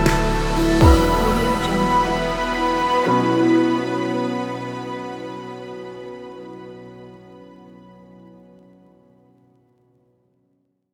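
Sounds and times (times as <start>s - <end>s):
dark chillstep music: 0.0s - 6.1s.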